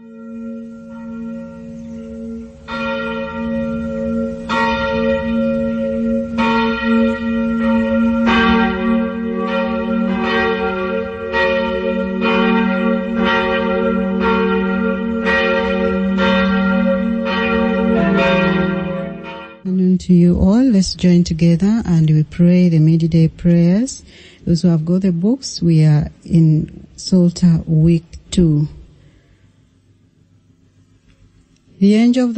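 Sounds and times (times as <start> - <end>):
church bells ringing for the Angelus: 0.0 - 19.7
speech: 20.9 - 28.8, 31.8 - 32.3.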